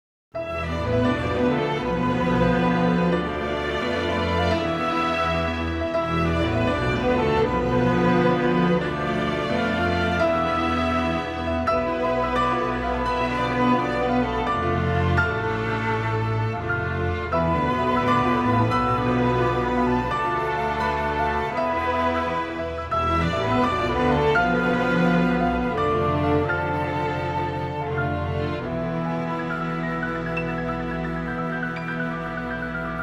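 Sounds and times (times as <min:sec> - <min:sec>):
harp and piano piece: 0:00.4 - 0:33.0.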